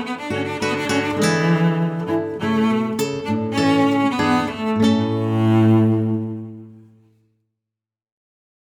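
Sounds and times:
hornpipe on cello and guitar: 0:00.0 - 0:06.9.

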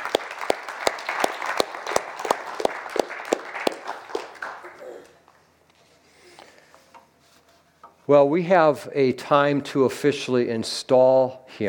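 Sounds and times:
audience applause: 0:00.0 - 0:05.2
speech: 0:08.1 - 0:11.6.

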